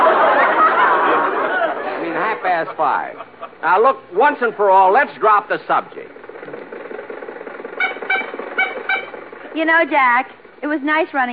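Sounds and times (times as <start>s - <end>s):
laughter: 0.0s - 3.8s
speech: 2.6s - 6.2s, 9.6s - 11.3s
car engine running while driving with Rochester at the wheel: 5.1s - 10.8s
brief squeaky tonal bursts: 7.8s - 9.2s.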